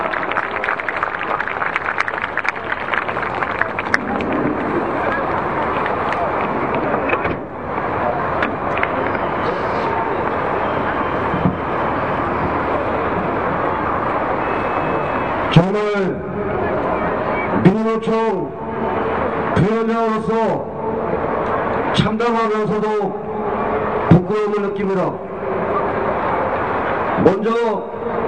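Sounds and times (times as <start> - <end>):
audience applause at a rally: 0.0 - 7.0
crowd noise: 0.0 - 28.2.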